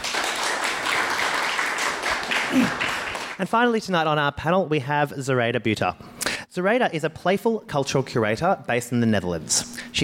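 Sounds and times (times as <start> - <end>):
crowd applauding: 0.0 - 3.4
speech: 3.4 - 10.0.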